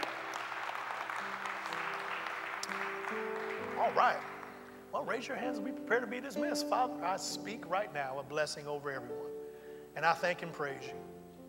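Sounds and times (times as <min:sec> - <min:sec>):
audience hand clapping applause: 0:00.0 - 0:05.0
speech: 0:03.8 - 0:04.3, 0:04.9 - 0:09.4, 0:10.0 - 0:11.1.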